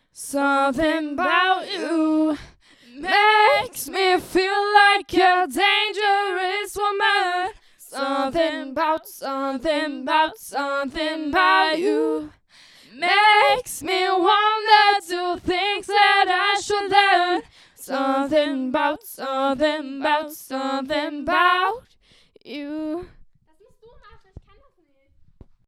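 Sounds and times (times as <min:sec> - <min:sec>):
a cappella singing: 0:00.0 - 0:23.1.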